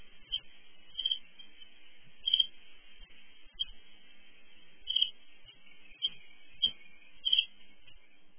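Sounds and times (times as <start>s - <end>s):
reed bunting singing and calling: 0.2s - 1.6s, 2.2s - 2.6s, 3.5s - 3.8s, 4.8s - 8.3s.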